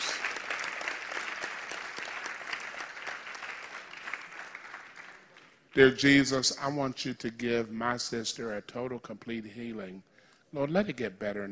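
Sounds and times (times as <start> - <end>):
church congregation applauding during a service: 0.0 - 6.0
speech: 5.8 - 11.5.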